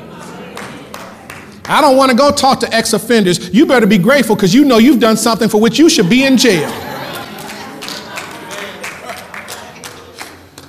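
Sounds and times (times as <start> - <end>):
audience clapping: 0.4 - 2.2, 6.5 - 10.6
speech: 1.7 - 7.0
laughter: 3.6 - 10.3.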